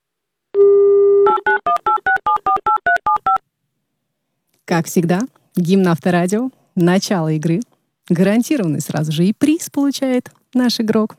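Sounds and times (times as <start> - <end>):
steady telephone dial tone: 0.6 - 3.4
speech: 4.7 - 11.1.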